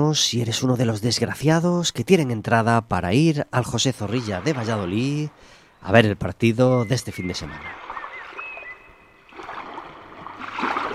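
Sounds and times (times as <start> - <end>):
speech: 0.0 - 7.8
sea waves: 3.5 - 6.0, 7.0 - 10.9
faint thin whistling tone: 6.7 - 9.2.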